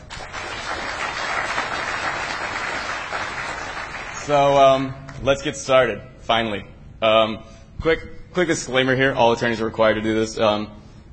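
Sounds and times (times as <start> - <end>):
audience applause: 0.0 - 4.4
speech: 4.3 - 10.8.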